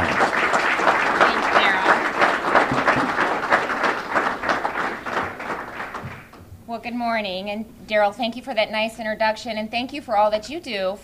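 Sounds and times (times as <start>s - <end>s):
crowd applause: 0.0s - 6.4s
speech: 6.9s - 11.0s.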